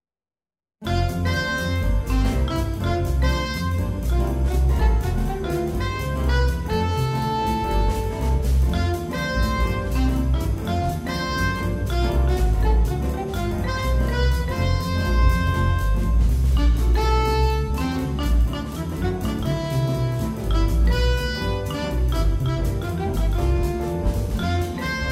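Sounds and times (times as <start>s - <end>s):
jingle: 0.9s - 25.1s.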